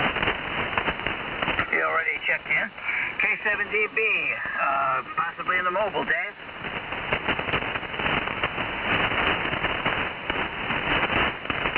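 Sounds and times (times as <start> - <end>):
lightning static crashes over radio: 0.0 - 11.7
speech: 2.6 - 6.3.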